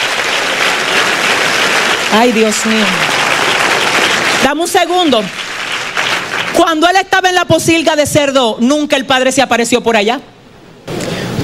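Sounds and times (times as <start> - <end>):
audience applause: 0.0 - 6.9
speech: 2.1 - 3.1, 4.4 - 5.4, 6.6 - 11.0.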